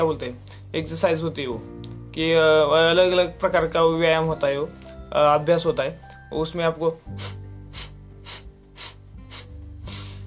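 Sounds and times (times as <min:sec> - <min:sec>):
speech: 0:00.0 - 0:07.4
forceful pranayama breathing in and out through the nose: 0:07.1 - 0:10.2.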